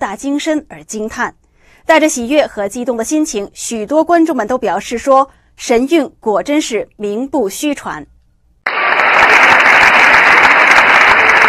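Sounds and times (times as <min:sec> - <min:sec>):
speech: 0:00.0 - 0:08.1
audience applause at a stage performance in Ottawa: 0:08.6 - 0:11.4.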